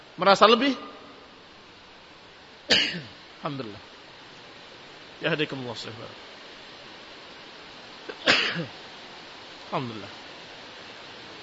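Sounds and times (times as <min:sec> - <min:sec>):
speech: 0:00.2 - 0:00.9, 0:02.7 - 0:03.9, 0:05.2 - 0:06.3, 0:08.6 - 0:08.8, 0:09.7 - 0:10.2
person sneezing: 0:08.1 - 0:08.7.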